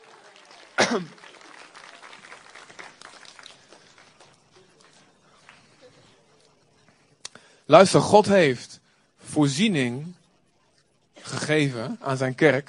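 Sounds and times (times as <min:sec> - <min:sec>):
audience applause: 0:00.0 - 0:06.4
speech: 0:00.9 - 0:01.2, 0:07.7 - 0:08.7, 0:09.4 - 0:10.2, 0:11.4 - 0:12.6.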